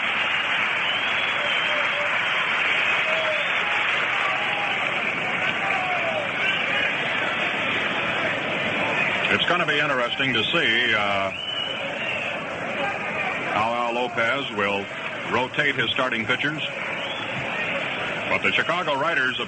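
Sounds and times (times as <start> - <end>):
stadium crowd applause: 0.0 - 19.4
speech: 9.4 - 11.5, 13.6 - 16.8, 18.3 - 19.4.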